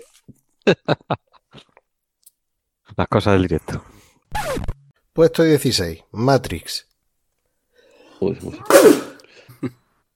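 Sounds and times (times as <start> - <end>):
speech: 0.7 - 1.1, 3.0 - 3.9, 5.2 - 6.9, 8.2 - 9.0
loud sneeze: 8.6 - 9.2.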